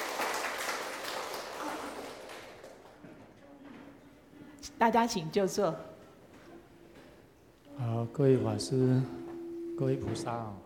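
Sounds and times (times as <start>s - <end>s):
warm applause from a crowd: 0.0s - 3.0s
speech: 4.8s - 5.9s, 8.1s - 9.2s, 9.8s - 10.6s.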